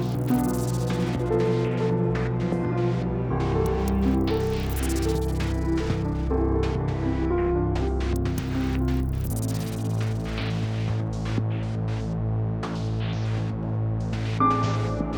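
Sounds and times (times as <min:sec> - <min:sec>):
electronic music generated by audience input through sensors into a MIDI machine: 0:00.0 - 0:15.1.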